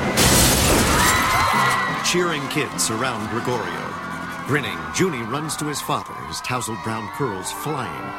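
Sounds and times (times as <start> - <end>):
schoolhouse window glass shattering: 0.1 - 1.8
speech: 2.1 - 8.1.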